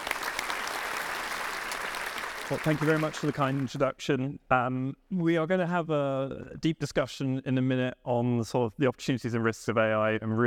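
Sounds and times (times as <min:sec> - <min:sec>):
audience applause: 0:00.0 - 0:03.8
speech: 0:02.5 - 0:10.4.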